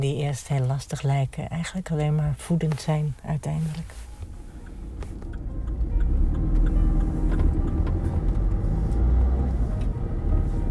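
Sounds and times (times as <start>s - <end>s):
speech: 0.0s - 4.1s
car engine and tyres rumbling on the road: 0.0s - 10.6s
faint higher clicks and ticks: 4.6s - 8.6s.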